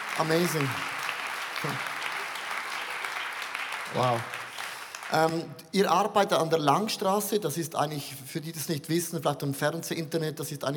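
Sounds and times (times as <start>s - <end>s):
group applauding: 0.0s - 5.6s
speech: 0.2s - 0.9s, 1.6s - 1.9s, 3.9s - 4.4s, 5.1s - 10.7s.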